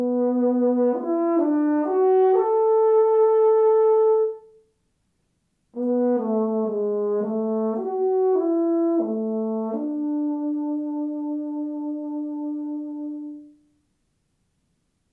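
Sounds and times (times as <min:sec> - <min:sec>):
lyrical euphonium playing: 0:00.0 - 0:04.6, 0:05.8 - 0:13.7.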